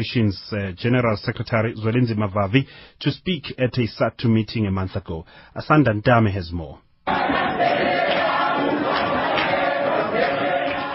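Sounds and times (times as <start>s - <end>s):
speech: 0.0s - 7.9s
crowd of union members cheering a welcome at a union meeting: 7.1s - 10.9s.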